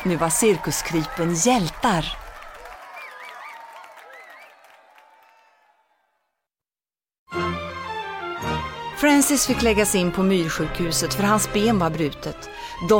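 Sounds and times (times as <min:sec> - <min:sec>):
speech: 0:00.0 - 0:02.2, 0:09.1 - 0:12.9
applause: 0:00.0 - 0:06.1.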